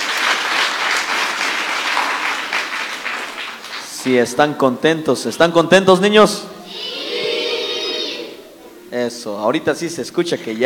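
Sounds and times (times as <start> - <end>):
audience applause: 0.0 - 4.2
speech: 4.0 - 6.5, 8.9 - 10.6.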